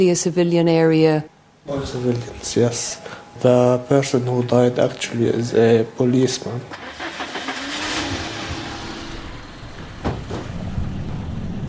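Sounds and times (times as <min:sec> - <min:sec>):
speech: 0:00.0 - 0:07.1
car engine hum driving through Nabatieh, Lebanon: 0:06.7 - 0:11.6
road noise in Nabatieh, Lebanon: 0:06.7 - 0:11.6.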